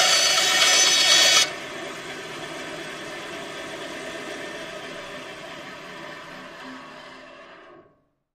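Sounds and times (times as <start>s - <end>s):
hand saw cutting through wood back and forth: 0.0s - 1.5s.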